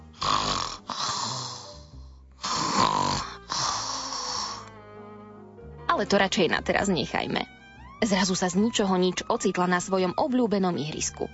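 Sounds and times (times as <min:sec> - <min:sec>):
voice imitating snoring of a sleeping girl: 0:00.0 - 0:04.7
speech: 0:06.0 - 0:11.3.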